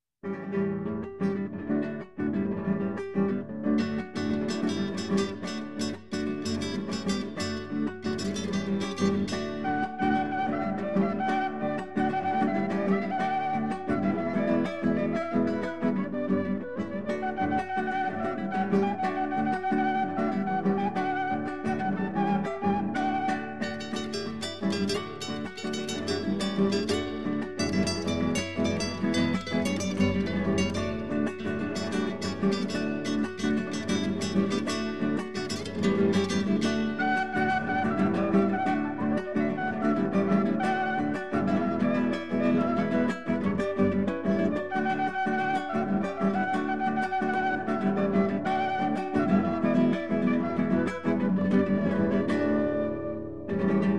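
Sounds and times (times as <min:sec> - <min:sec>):
Andean guitar: 0:00.2 - 0:53.9
Andean flute: 0:04.0 - 0:53.9.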